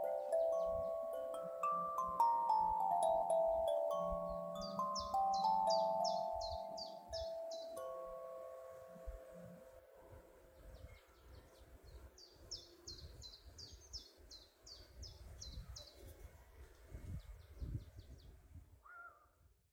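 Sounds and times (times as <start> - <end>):
21-tone walnut kalimbas in F major: 0.0 - 9.8.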